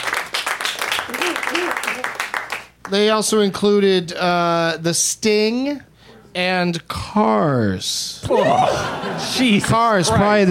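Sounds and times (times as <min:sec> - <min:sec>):
audience applause: 0:00.0 - 0:02.7
laughter: 0:01.1 - 0:02.0, 0:08.3 - 0:10.4
speech: 0:01.5 - 0:02.1, 0:02.9 - 0:10.4.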